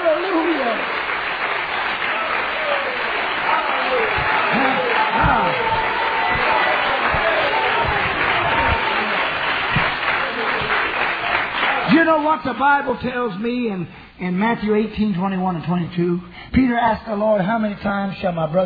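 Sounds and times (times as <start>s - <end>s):
audience clapping hands: 0.0s - 13.0s
speech: 12.4s - 18.6s.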